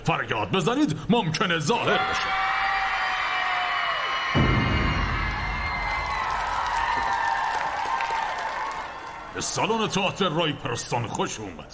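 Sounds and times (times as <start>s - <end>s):
speech: 0.0s - 2.6s, 9.4s - 11.7s
crowd cheering and whooping: 1.9s - 9.4s
dense applause: 2.4s - 9.7s.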